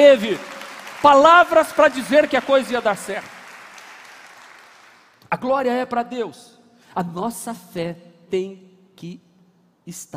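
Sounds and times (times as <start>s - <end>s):
speech: 0.0s - 3.4s, 5.3s - 9.3s, 9.9s - 10.1s
audience applauding: 0.0s - 5.2s.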